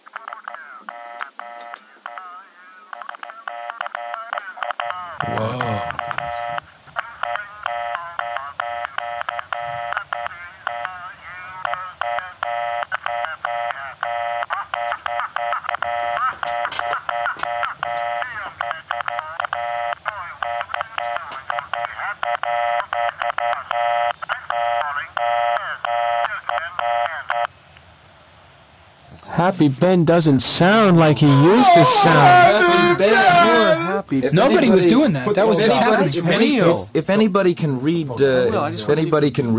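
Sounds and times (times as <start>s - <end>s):
Morse code beeps: 0.2s - 2.3s, 2.9s - 5.3s, 5.9s - 6.6s, 7.2s - 11.0s, 11.6s - 27.5s
speech: 29.5s - 39.5s
laughter: 31.0s - 36.7s.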